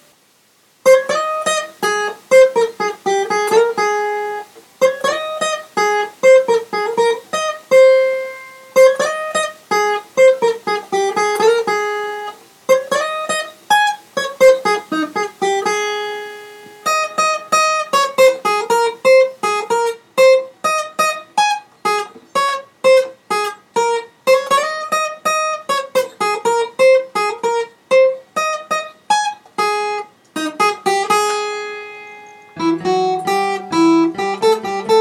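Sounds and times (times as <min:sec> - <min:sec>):
solo guitar medley: 0:00.8 - 0:34.9.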